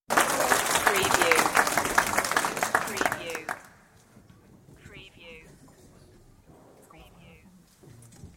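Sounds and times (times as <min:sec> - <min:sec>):
audience applause: 0:00.1 - 0:03.8.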